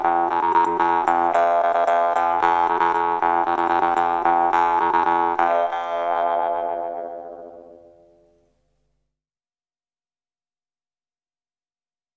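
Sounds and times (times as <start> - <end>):
Altai vargan jaw harp: 0.0 - 7.8.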